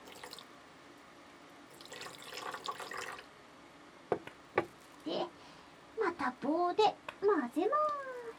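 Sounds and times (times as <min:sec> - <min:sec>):
liquid poured into a cooking pot: 0:00.0 - 0:00.5, 0:01.7 - 0:03.3
speech: 0:06.6 - 0:08.0.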